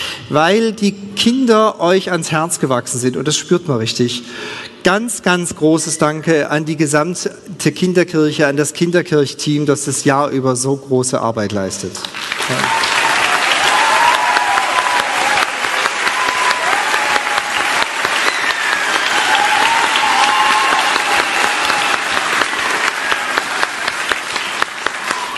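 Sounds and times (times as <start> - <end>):
speech: 0.3 - 12.9
audience applause: 12.1 - 25.3.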